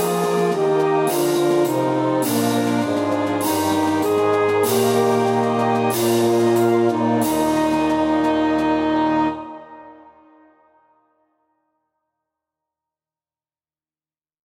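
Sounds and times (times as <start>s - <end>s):
saxophone melody: 0.0s - 10.6s.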